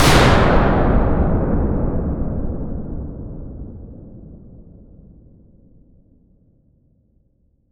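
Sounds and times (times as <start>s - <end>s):
large explosion: 0.0s - 5.4s.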